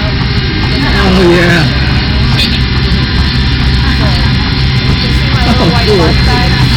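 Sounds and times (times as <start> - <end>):
KC-135 parabolic flight aircraft engine drone: 0.0 - 6.7
indistinct voices: 0.0 - 6.7.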